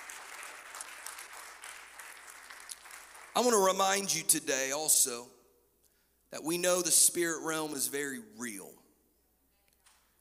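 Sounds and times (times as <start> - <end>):
audience clapping hands: 0.0 - 4.1
speech: 3.4 - 5.4, 6.3 - 8.8.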